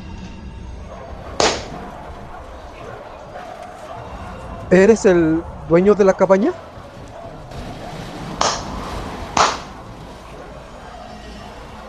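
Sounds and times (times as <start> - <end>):
hand claps answering a question: 1.4 - 1.7, 8.4 - 8.7, 9.4 - 9.7
speech: 4.7 - 6.7.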